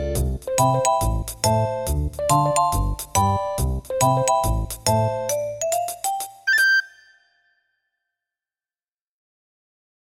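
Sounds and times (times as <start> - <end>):
background music: 0.0 - 7.6.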